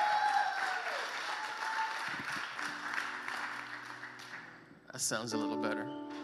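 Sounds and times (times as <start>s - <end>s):
crowd applause in a large room: 0.0s - 4.6s
speech: 5.0s - 6.0s.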